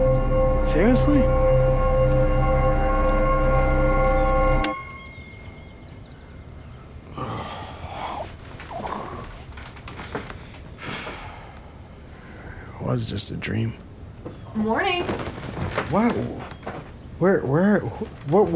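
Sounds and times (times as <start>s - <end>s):
church bell ringing: 0.0s - 6.8s
speech: 0.8s - 1.5s, 13.1s - 13.8s, 14.7s - 16.5s, 17.2s - 18.5s.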